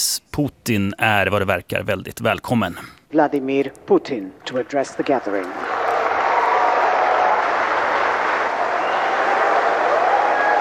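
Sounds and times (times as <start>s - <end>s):
speech: 0.4s - 5.7s
audience applauding at BRICS business forum: 4.6s - 10.5s.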